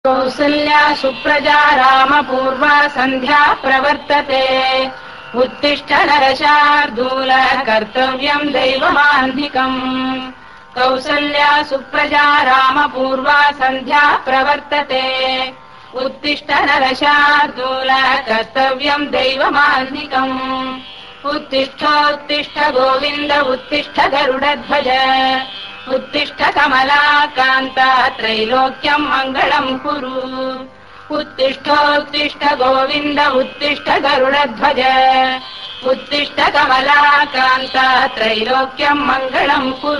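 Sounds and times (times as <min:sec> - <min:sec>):
devotional mantra song: 0:00.0 - 0:39.9.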